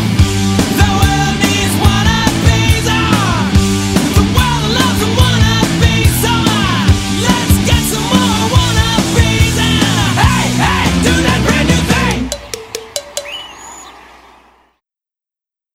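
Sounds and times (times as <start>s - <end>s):
bass: 0.0s - 12.4s.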